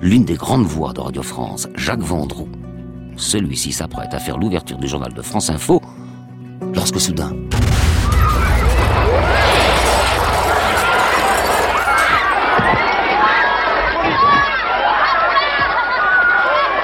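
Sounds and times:
speech: 0:00.0 - 0:05.8, 0:06.8 - 0:07.7
stadium stand collapsing at the Furiani stadium: 0:07.6 - 0:12.9
crowd: 0:07.9 - 0:16.8.

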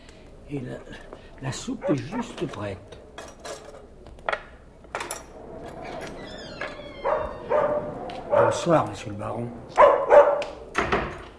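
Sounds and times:
speech: 0:00.5 - 0:03.0, 0:08.4 - 0:09.8
dog: 0:01.8 - 0:02.4, 0:07.0 - 0:08.7, 0:09.7 - 0:10.6.

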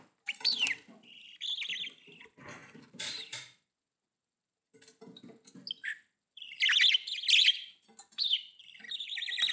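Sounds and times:
budgerigar harsh calls, chatter and whistles: 0:00.3 - 0:02.4, 0:05.7 - 0:09.4.

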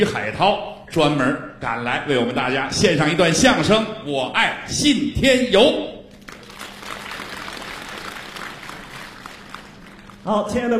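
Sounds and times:
speech: 0:00.0 - 0:06.0, 0:10.2 - 0:10.7
audience applause for xiangsheng comedians from Xi'an at a New Year show: 0:06.2 - 0:10.4.

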